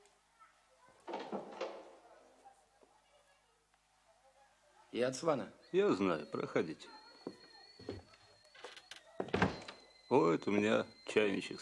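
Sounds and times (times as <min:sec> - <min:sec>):
speech: 0:04.9 - 0:07.4, 0:10.1 - 0:11.6
door at top of stairwell opening with rattling creak: 0:08.5 - 0:10.0.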